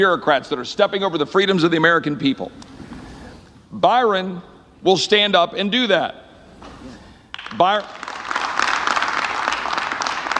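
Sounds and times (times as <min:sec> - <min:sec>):
speech: 0:00.0 - 0:02.7, 0:03.7 - 0:06.7, 0:07.5 - 0:08.0
people clapping: 0:07.3 - 0:10.3.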